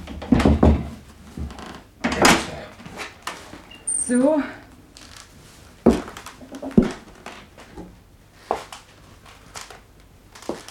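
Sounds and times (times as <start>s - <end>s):
stuck rusty door being lifted and forced open: 0.1s - 2.4s, 5.9s - 7.2s
speech: 4.1s - 4.6s.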